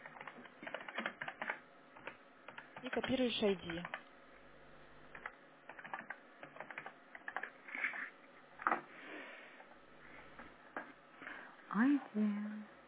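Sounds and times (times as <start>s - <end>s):
typing on a computer keyboard: 0.0s - 4.0s, 5.1s - 8.0s
speech: 2.8s - 4.1s, 11.8s - 12.7s.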